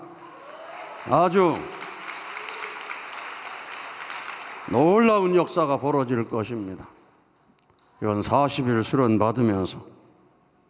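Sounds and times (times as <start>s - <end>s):
audience applause: 0.0s - 5.4s
speech: 1.0s - 1.8s, 4.7s - 7.0s, 8.0s - 10.0s.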